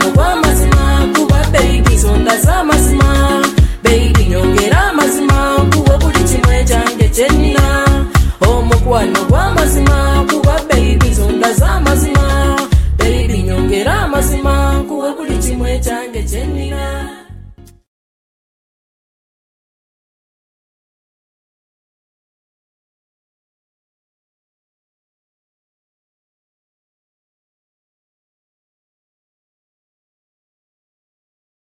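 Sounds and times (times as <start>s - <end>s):
Ugandan music: 0.0s - 17.8s.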